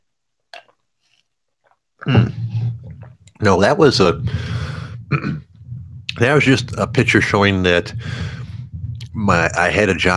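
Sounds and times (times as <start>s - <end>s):
wet mouth click: 0.5s - 0.8s
speech: 2.0s - 5.5s, 6.2s - 8.4s, 9.2s - 10.1s
low hum: 2.0s - 10.1s.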